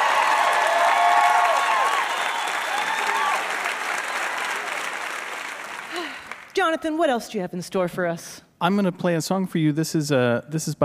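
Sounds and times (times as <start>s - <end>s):
audience applause: 0.0s - 6.6s
speech: 6.6s - 10.8s.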